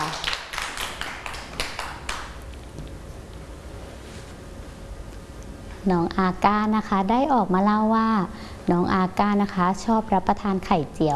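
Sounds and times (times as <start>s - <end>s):
children clapping: 0.0s - 2.4s
speech: 5.8s - 11.1s.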